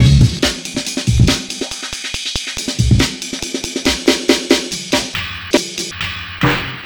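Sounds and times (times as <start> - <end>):
breakbeat drum loop at 140 BPM: 0.0 - 6.8.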